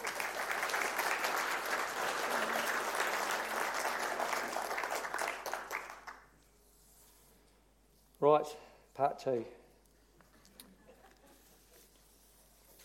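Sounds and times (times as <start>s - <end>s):
room full of people applauding: 0.0s - 6.3s
speech: 8.2s - 9.6s.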